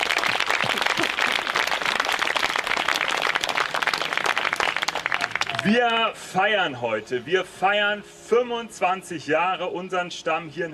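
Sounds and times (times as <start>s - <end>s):
audience applause: 0.0s - 5.7s
speech: 5.6s - 10.7s.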